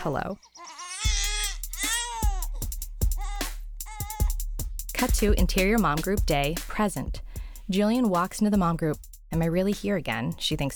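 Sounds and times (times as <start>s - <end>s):
speech: 0.0s - 1.3s, 5.0s - 10.7s
baby screaming: 0.4s - 4.4s.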